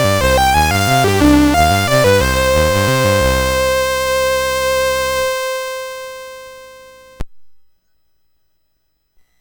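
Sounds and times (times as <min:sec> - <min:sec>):
waltz on MOS6581R4 sound chip: 0:00.0 - 0:07.2.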